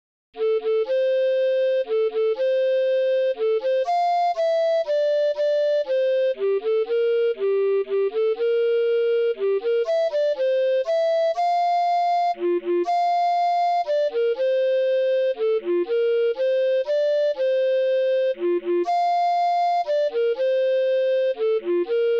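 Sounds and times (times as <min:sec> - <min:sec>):
recorder playing a lullaby: 0:00.4 - 0:22.1.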